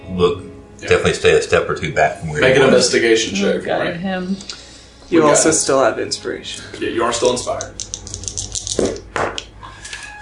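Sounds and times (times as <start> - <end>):
speech: 0.1 - 7.9
dice clattering across a hard surface: 7.3 - 9.1.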